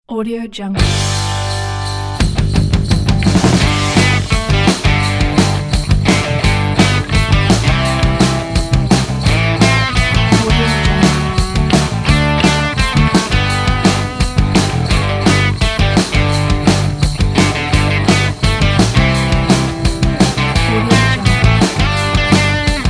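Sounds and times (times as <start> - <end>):
Christmas rock music: 0.8 - 22.8.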